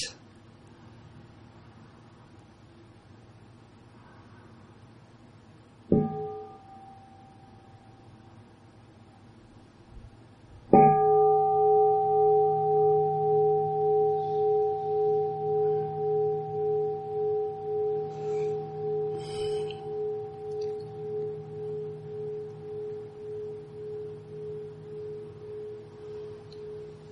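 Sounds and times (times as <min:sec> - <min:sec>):
meditation bell ringing: 0:05.9 - 0:08.2, 0:10.7 - 0:27.0.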